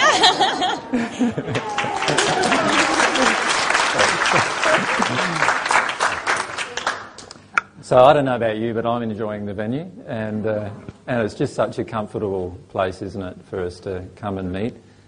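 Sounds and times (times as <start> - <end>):
laughter: 0.0 - 5.5
crowd applauding: 0.0 - 7.3
speech: 0.2 - 2.3, 7.9 - 14.8
murmuring voices: 0.8 - 5.6.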